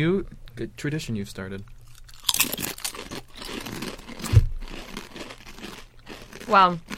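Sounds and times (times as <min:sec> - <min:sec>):
speech: 0:00.0 - 0:01.8, 0:06.5 - 0:06.9
potato chips being bitten and chewed: 0:01.8 - 0:06.9.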